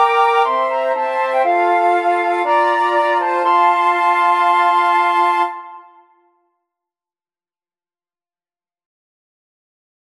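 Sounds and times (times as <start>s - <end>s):
flute quartet playing a wedding march: 0.0s - 6.0s.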